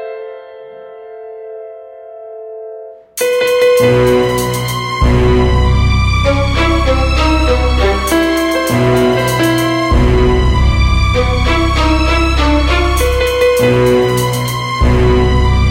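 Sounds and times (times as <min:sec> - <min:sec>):
medium zawa suspense instrumental: 0:03.2 - 0:15.6.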